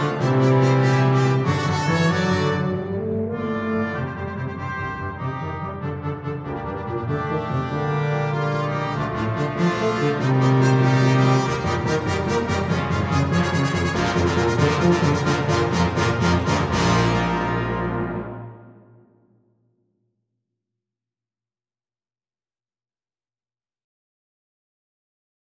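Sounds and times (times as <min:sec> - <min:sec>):
tuba playing marcato: 0:00.0 - 0:18.9.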